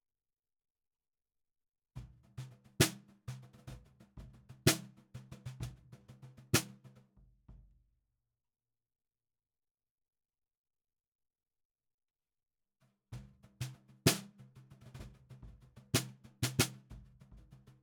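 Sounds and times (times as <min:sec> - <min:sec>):
snare drum recorded from the bottom: 0:02.0 - 0:07.0, 0:13.2 - 0:17.7.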